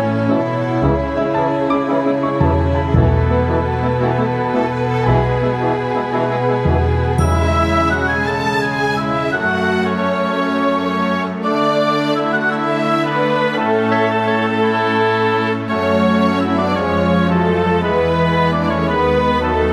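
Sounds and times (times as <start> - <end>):
music theme: 0.0 - 19.7.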